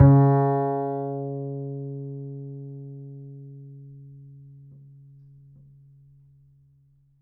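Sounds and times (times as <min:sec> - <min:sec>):
upright acoustic bass: 0:00.0 - 0:05.4.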